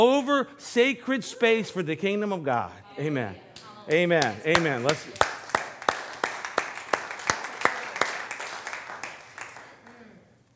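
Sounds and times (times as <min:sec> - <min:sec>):
speech: 0:00.0 - 0:05.3
audience clapping in rhythm: 0:03.5 - 0:10.3.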